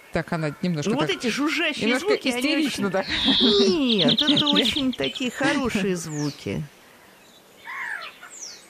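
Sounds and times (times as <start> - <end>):
speech: 0.1 - 6.8
corvid calls: 0.4 - 6.3
laughter: 1.0 - 5.9.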